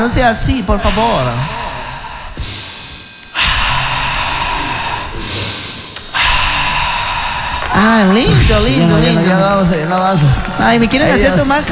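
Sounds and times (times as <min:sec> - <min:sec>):
speech: 0:00.0 - 0:01.6, 0:07.8 - 0:11.6
sweaty woman breathing heavily to catch her breath: 0:00.8 - 0:08.2.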